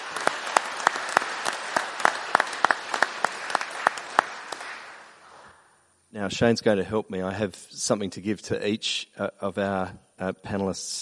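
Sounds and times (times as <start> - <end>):
audience applause: 0.0 - 5.5
speech: 6.1 - 10.9.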